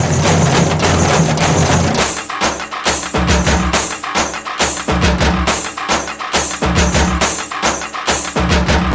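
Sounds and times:
Tamil folk beat: 0:00.0 - 0:08.9.

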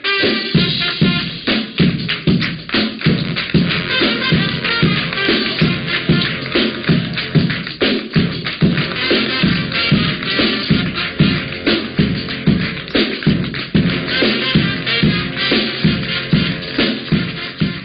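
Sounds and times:
drum: 0:00.2 - 0:17.8.

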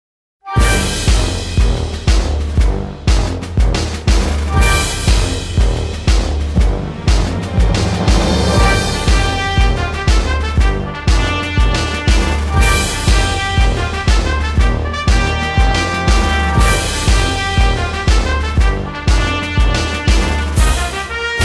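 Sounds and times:
march music: 0:00.5 - 0:21.4.

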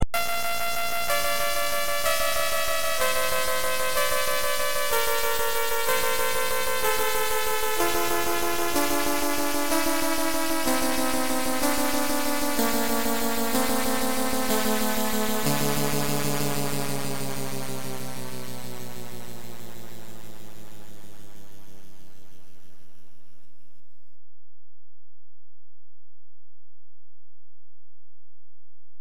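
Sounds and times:
C64 chiptune music: 0:00.0 - 0:23.4.

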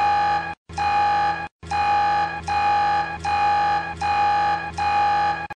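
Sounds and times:
lost beep alert: 0:00.1 - 0:05.5.

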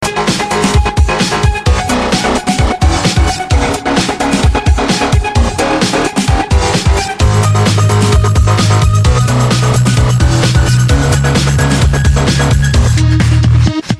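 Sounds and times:
techno disco music: 0:00.0 - 0:13.9.

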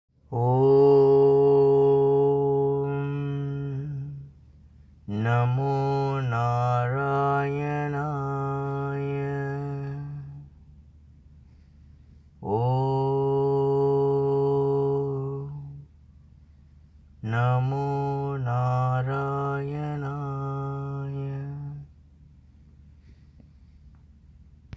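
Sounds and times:
mantra chanting: 0:00.3 - 0:04.3, 0:05.0 - 0:10.6, 0:12.4 - 0:15.9, 0:17.2 - 0:21.9.

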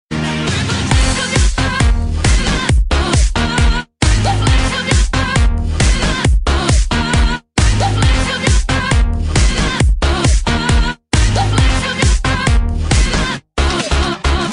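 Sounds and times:
disco music: 0:00.1 - 0:14.5.

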